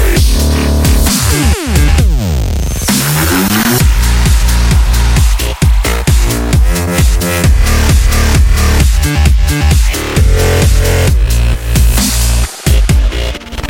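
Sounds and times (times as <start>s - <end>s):
electro music: 0.0s - 13.6s.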